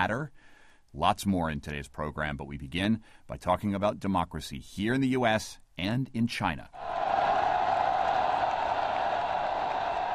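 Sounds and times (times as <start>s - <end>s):
speech: 0.0s - 7.0s
crowd of pro-democracy demonstrators in Hong Kong: 6.8s - 10.1s.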